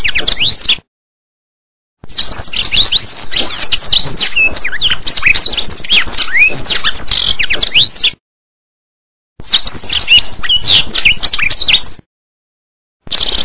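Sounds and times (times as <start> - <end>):
masteran bird song of swooping whistles, sharp chips and rapid trills: 0.0 - 0.8, 2.0 - 8.2, 9.4 - 12.1, 13.1 - 13.4.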